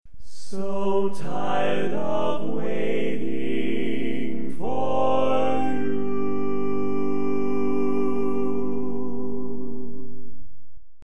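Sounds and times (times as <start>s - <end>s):
barbershop lead singing: 0.4s - 9.1s.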